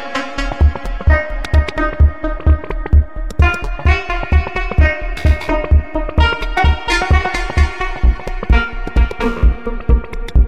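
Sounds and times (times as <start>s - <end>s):
DJ mix ringtone: 0.4s - 10.4s.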